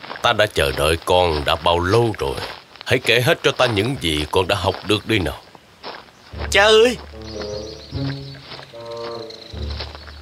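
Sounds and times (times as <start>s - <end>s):
speech: 0.2s - 5.4s, 6.3s - 7.5s
birds squawking in a forest: 6.3s - 10.1s.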